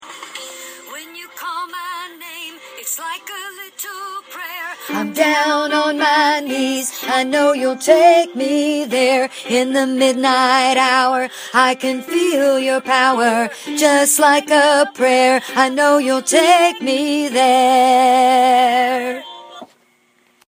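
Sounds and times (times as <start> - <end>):
chorus singing a third below: 4.6 - 19.7.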